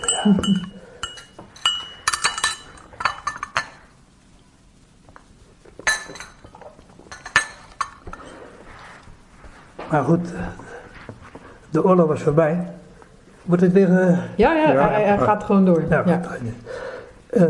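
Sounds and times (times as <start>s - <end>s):
glass clinking while taking a sip: 0.0s - 3.9s, 5.8s - 8.3s
speech: 0.2s - 0.8s, 9.9s - 10.6s, 11.7s - 12.8s, 13.5s - 16.7s.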